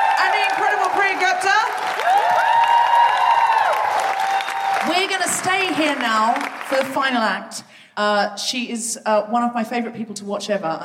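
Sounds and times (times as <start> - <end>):
audience whooping at a live comedy show: 0.0 - 5.2
audience clapping at a live comedy show: 0.0 - 7.3
speech: 5.8 - 10.8.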